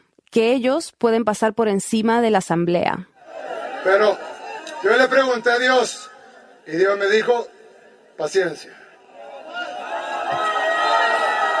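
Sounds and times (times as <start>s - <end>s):
speech: 0.4s - 6.1s, 6.7s - 7.6s, 8.2s - 8.8s
crowd of supporters shouting: 3.2s - 11.5s.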